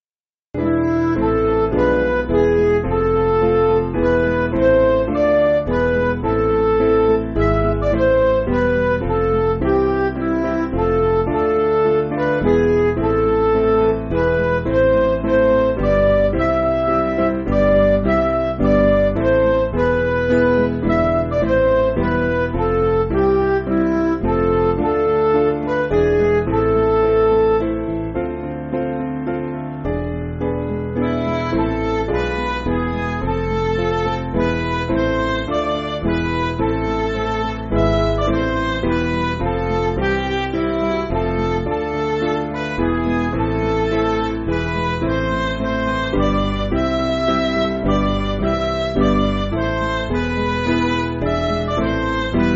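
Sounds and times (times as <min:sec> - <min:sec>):
MIDI music: 0:00.6 - 0:52.5.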